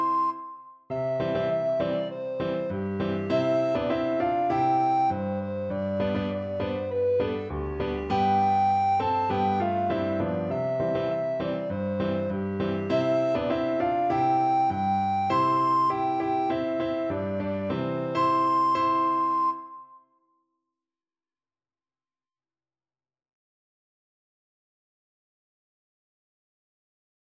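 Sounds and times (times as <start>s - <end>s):
alto recorder: 0.0s - 20.0s.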